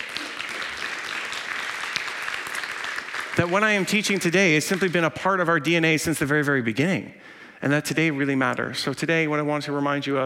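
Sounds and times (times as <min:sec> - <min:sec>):
audience clapping: 0:00.0 - 0:05.1
speech: 0:03.4 - 0:10.2.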